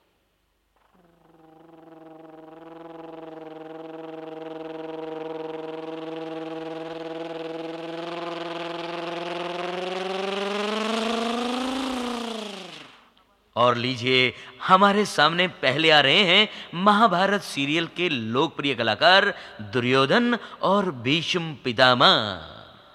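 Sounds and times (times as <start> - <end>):
helicopter descending: 1.2 - 13.1
speech: 13.6 - 22.5.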